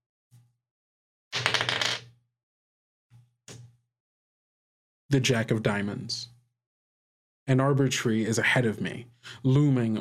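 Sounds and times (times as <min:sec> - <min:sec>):
six-sided die rolled for a tabletop game: 0:01.4 - 0:02.0
speech: 0:05.1 - 0:06.4, 0:07.5 - 0:09.9.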